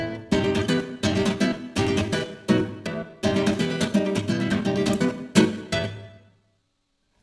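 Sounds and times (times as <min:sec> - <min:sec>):
tarantella dance music: 0:00.1 - 0:06.1.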